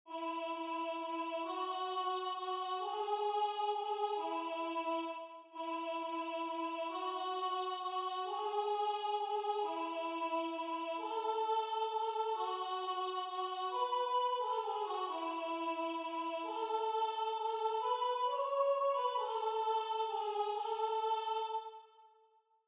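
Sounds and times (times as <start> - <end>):
soprano singing: 0.1 - 21.9.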